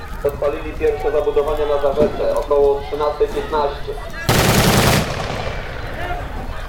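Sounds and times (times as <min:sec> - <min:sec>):
speech: 0:00.2 - 0:04.1
gunfire: 0:04.3 - 0:06.4.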